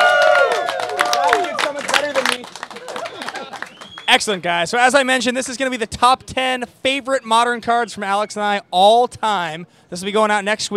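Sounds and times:
shouts and whoops from several voices: 0.0 - 1.8, 2.8 - 3.7
audience applause: 0.0 - 4.2
speech: 4.1 - 10.7.

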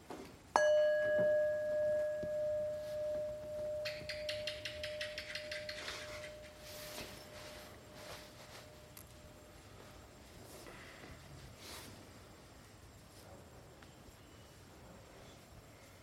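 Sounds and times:
meditation bell ringing: 0.6 - 8.9.

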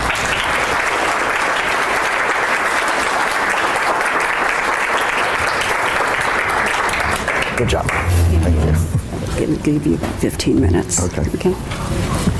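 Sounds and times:
audience applause welcoming a speaker: 0.0 - 9.1
speech: 7.6 - 8.6, 9.4 - 12.3.

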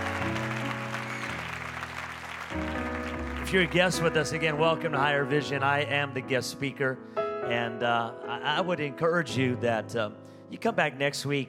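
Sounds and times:
audience applause: 0.0 - 4.7
sustained keyboard chords: 2.5 - 11.4
speech: 3.5 - 11.4.

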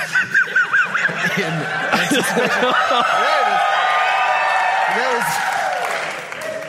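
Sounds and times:
auditorium audience laughing: 0.0 - 3.7
auditorium audience cheering and applauding: 1.9 - 6.6
audience excited shouts and whoops: 2.6 - 6.0.

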